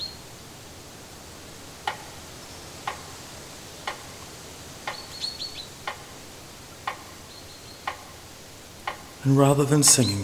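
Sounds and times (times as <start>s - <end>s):
faint high bird chirps: 1.8s - 10.2s
metronome ticking at sixty beats per minute: 2.8s - 3.2s, 3.8s - 6.2s, 6.8s - 10.2s
speech: 9.2s - 10.2s.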